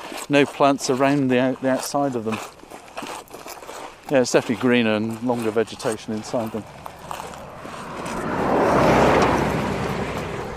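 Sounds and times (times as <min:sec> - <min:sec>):
speech: 0:00.3 - 0:02.6, 0:04.1 - 0:06.8
car driving past quickly on a straight coastal road: 0:06.6 - 0:10.5.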